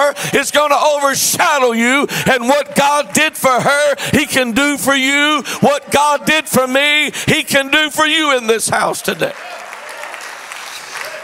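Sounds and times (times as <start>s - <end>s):
speech: 0.1s - 9.6s
audience clapping: 8.9s - 11.2s.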